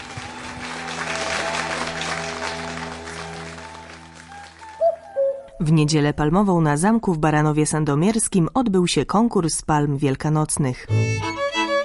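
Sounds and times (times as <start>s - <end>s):
concert audience applause: 0.0s - 5.2s
speech: 5.6s - 11.4s.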